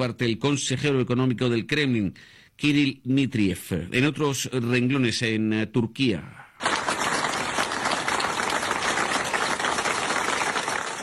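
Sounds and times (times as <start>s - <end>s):
speech: 0.0s - 6.7s
staff applauding in a newsroom: 6.6s - 11.0s.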